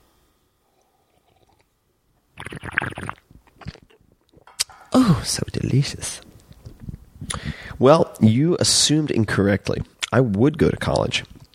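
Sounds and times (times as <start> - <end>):
sipping wine: 0.7 - 1.8, 2.4 - 7.7
speech: 5.0 - 6.2, 7.8 - 11.3.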